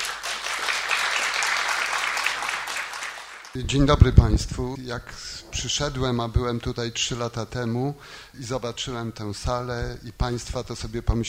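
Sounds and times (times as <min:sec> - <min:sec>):
audience applause welcoming a guest: 0:00.0 - 0:03.6
speech: 0:03.6 - 0:11.2.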